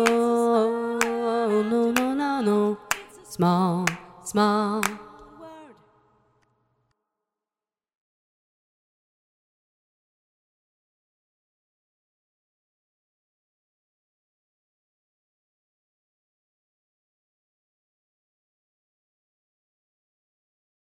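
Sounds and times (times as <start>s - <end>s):
a cappella singing: 0.0s - 6.0s.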